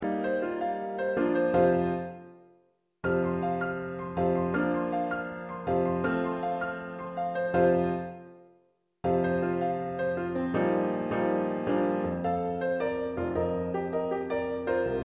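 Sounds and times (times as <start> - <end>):
piano: 0.0 - 15.0.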